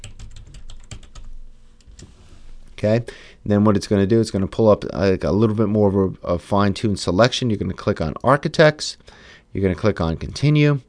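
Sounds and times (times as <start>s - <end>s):
typing on a computer keyboard into a search bar: 0.0s - 1.3s
speech: 2.8s - 10.8s.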